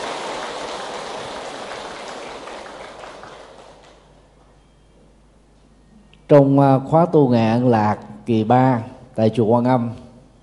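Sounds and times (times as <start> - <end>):
loud applause: 0.0 - 4.1
speech: 6.3 - 10.0.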